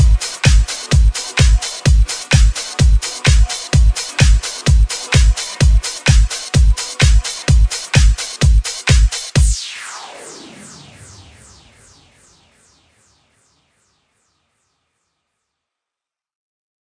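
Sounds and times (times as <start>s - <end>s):
mainstream vocal music at 128 bpm: 0.0s - 9.6s.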